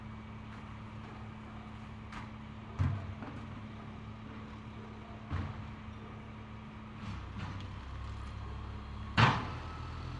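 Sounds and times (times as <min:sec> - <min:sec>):
garbage truck picking up trash in urban neighborhood: 0:00.2 - 0:10.0.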